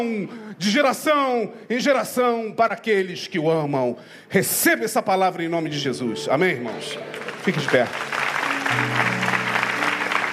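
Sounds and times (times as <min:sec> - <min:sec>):
speech: 0:00.0 - 0:09.2
sustained organ or keyboard chords: 0:06.1 - 0:10.3
audience applause: 0:06.7 - 0:10.3.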